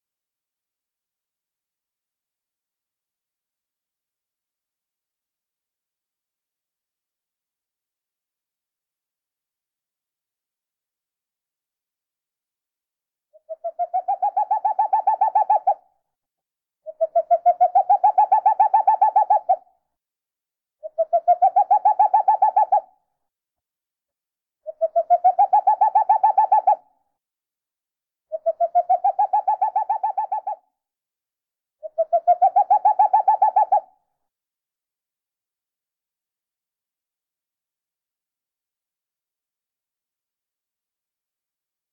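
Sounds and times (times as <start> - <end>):
owl hooting: 13.4 - 15.9, 16.8 - 19.7, 20.8 - 23.0, 24.6 - 26.9, 28.3 - 30.7, 31.8 - 33.9.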